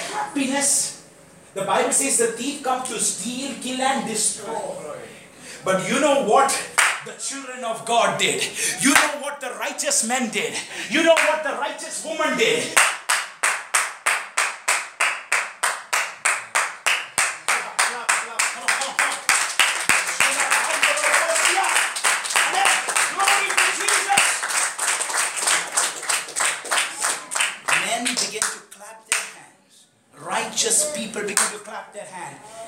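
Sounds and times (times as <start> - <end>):
speech: 0.2 - 13.0
audience clapping hands: 6.8 - 7.0, 11.1 - 11.4, 12.8 - 29.4, 31.3 - 31.6.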